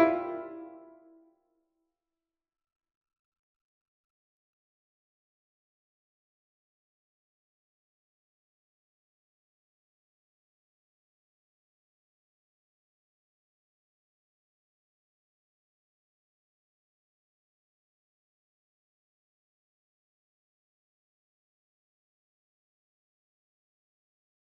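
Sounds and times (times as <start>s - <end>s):
piano piece: 0.0s - 0.9s.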